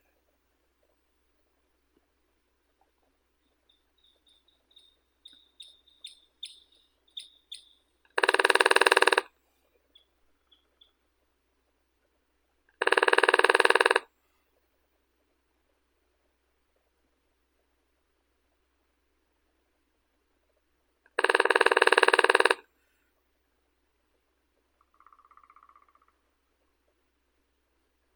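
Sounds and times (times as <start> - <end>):
lesser spotted woodpecker Dendrocopos minor: 3.4 - 9.3, 9.9 - 11.0, 12.8 - 14.0, 21.1 - 22.6, 24.8 - 26.4.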